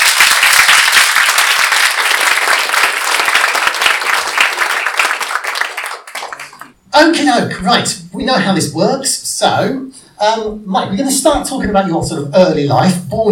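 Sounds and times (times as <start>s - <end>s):
audience applause welcoming a guest: 0.0s - 6.7s
speech: 7.0s - 13.3s.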